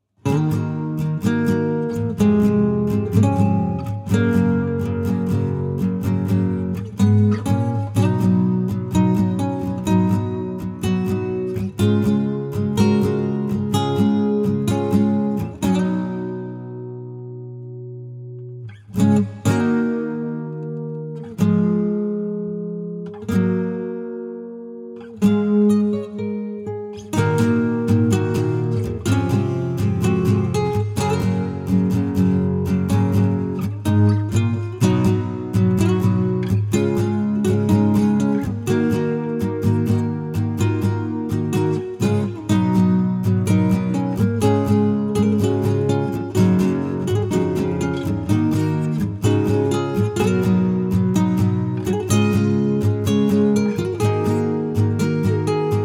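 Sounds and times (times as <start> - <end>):
acoustic music: 0.0 - 55.8.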